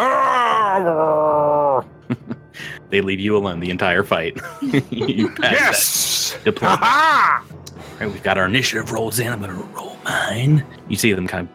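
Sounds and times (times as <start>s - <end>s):
person imitating zombie moan: 0.0s - 1.9s
laughter: 2.1s - 2.5s, 4.4s - 7.4s
speech: 2.9s - 11.5s.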